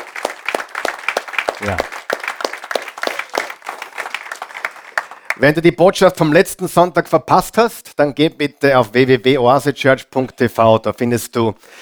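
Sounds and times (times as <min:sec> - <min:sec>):
audience applauding: 0:00.0 - 0:05.6
speech: 0:01.6 - 0:02.0, 0:05.4 - 0:11.8.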